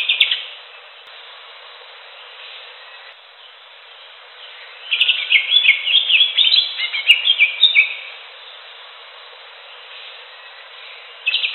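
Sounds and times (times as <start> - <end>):
Greater green leafbird song of rapid chirps and slurred whistles: 4.9 - 8.0, 11.2 - 11.5.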